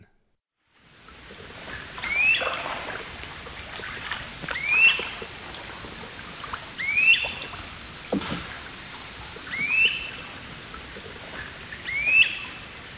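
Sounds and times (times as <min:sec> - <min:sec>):
great crested flycatcher whistled calls in eastern lowlands: 0:00.8 - 0:12.9.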